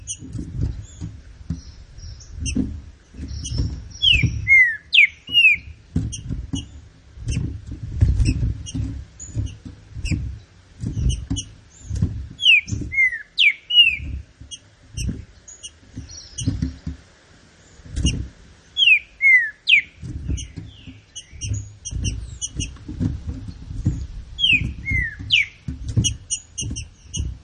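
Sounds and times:
low thumping: 0:00.0 - 0:18.7, 0:19.8 - 0:27.4
green-winged saltator whistled song: 0:04.0 - 0:05.7, 0:12.4 - 0:14.0, 0:18.8 - 0:20.0, 0:24.4 - 0:25.6.

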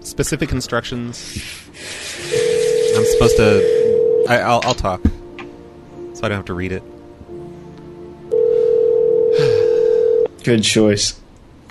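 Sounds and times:
speech: 0:00.0 - 0:02.4, 0:03.0 - 0:05.1, 0:06.2 - 0:06.9, 0:10.4 - 0:11.6
telephone ringback tone during a prank phone call: 0:02.3 - 0:04.3, 0:08.3 - 0:10.3.

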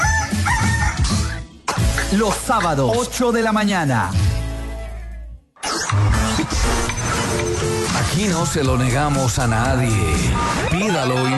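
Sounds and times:
rooster crowing: 0:00.0 - 0:01.4
speech: 0:02.1 - 0:04.2, 0:05.9 - 0:11.3.

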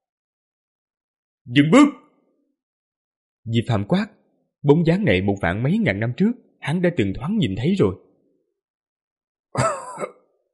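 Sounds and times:
speech: 0:01.5 - 0:02.0, 0:03.4 - 0:08.0
old man's harsh violent coughing: 0:09.6 - 0:10.3.

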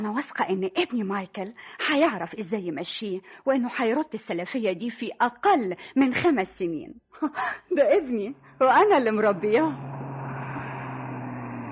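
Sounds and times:
speech: 0:00.0 - 0:10.0
car brakes as a car arrives: 0:09.7 - 0:11.7.

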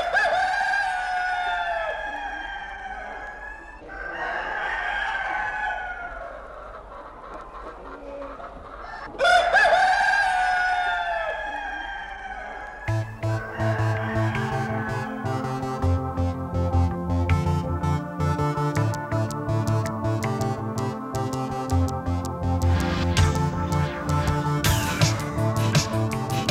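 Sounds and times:
rooster crowing: 0:00.0 - 0:06.5, 0:08.8 - 0:16.2
rhythmic music with steady beat: 0:12.9 - 0:26.4.

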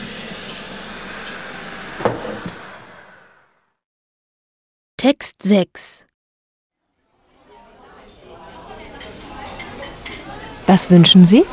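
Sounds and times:
water boiling in a kettle: 0:00.0 - 0:03.5
speech: 0:05.0 - 0:06.1, 0:10.7 - 0:11.5.

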